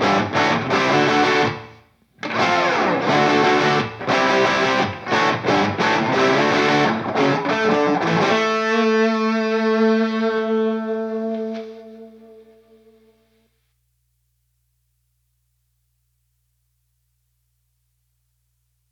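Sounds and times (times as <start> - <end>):
rhythm guitar: 0.0 - 13.1.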